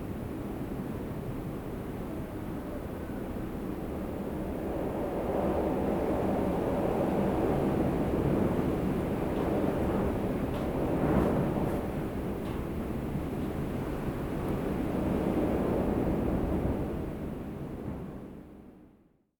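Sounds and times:
wind outside: 0.0 - 19.1.

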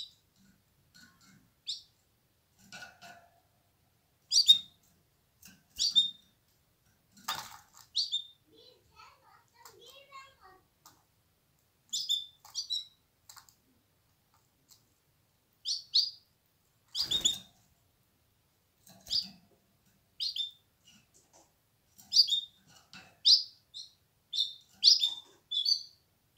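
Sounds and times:
canary singing trills and rolling tours: 1.2 - 2.0, 4.2 - 4.8, 5.7 - 6.4, 7.8 - 10.5, 11.9 - 13.1, 15.6 - 16.3, 16.9 - 17.6, 19.0 - 19.4, 20.2 - 21.2, 22.0 - 26.3.

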